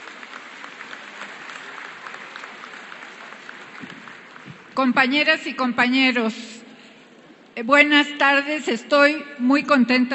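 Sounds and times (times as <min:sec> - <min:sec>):
audience applause: 0:00.0 - 0:04.8
speech: 0:04.8 - 0:06.5, 0:07.6 - 0:10.1.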